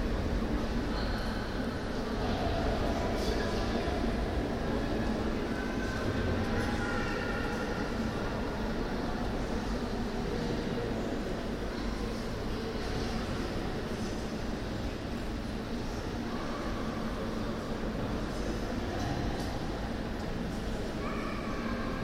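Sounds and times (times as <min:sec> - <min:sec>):
reverberant crowd din in the main hall of the Museum of Fine Arts in Lille: 0:00.0 - 0:22.0.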